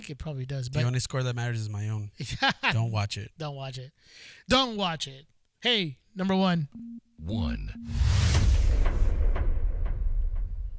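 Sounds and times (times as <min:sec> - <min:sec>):
speech: 0:00.0 - 0:08.9
echo sound effect: 0:07.6 - 0:10.7.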